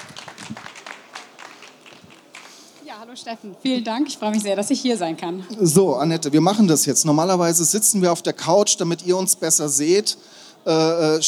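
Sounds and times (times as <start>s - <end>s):
small audience clapping: 0.0s - 2.9s
speech: 3.0s - 11.2s.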